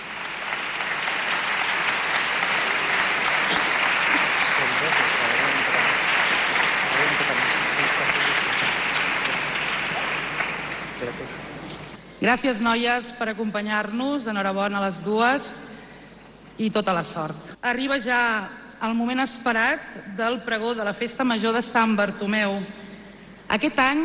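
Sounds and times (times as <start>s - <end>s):
crowd applause: 0.0s - 12.0s
speech: 12.2s - 15.7s, 16.6s - 22.8s, 23.5s - 24.0s.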